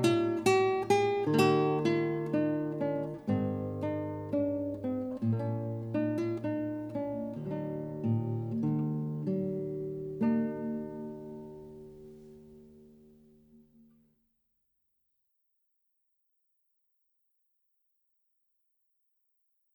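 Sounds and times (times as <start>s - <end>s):
guitar: 0.0s - 14.1s.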